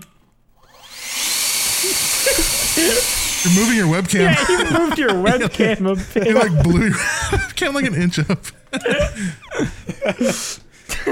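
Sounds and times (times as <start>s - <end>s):
leaf blower running: 0.7s - 4.1s
laughter: 1.8s - 11.1s
speech: 2.8s - 11.1s.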